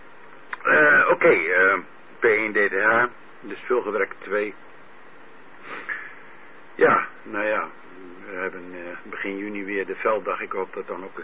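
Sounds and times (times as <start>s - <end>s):
speech: 1.1s - 4.7s, 6.8s - 11.2s
throat clearing: 5.6s - 6.2s.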